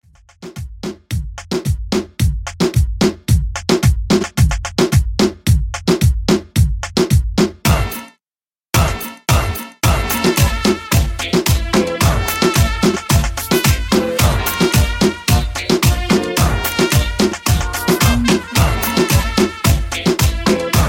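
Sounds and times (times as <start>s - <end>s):
party dancehall music: 0.9s - 8.1s, 8.8s - 20.8s.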